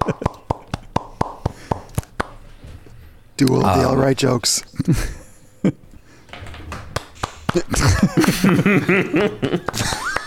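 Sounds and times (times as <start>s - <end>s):
soft polite golf clap: 0.0s - 2.4s, 6.9s - 8.4s, 9.6s - 10.2s
speech: 3.4s - 5.8s, 7.6s - 10.0s
laughter: 4.8s - 5.9s, 7.6s - 10.2s.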